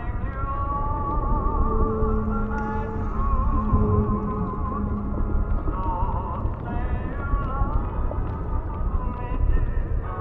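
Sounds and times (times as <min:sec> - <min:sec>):
dense rumbling low wash: 0:00.0 - 0:10.2
old-style music as if underwater: 0:00.0 - 0:10.2.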